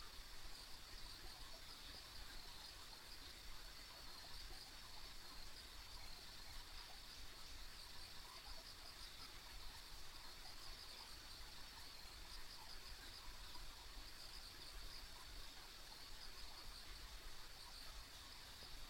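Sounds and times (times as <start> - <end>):
insects chirping on a country road: 0.0 - 18.8.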